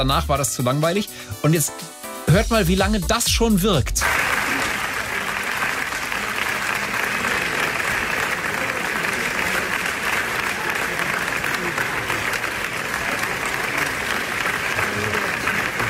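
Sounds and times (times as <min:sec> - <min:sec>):
speech: 0:00.0 - 0:04.3
recorded audience applause: 0:04.0 - 0:15.8.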